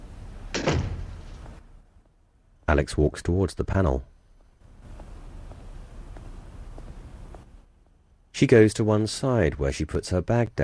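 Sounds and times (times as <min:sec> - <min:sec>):
door closing: 0:00.4 - 0:01.6
speech: 0:02.7 - 0:04.1, 0:08.4 - 0:10.6.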